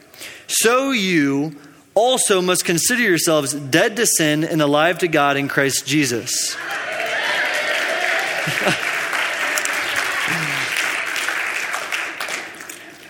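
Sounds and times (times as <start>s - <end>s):
speech: 0.5s - 6.8s, 8.4s - 8.8s
audience clapping: 6.6s - 13.0s
laughter: 8.0s - 11.0s.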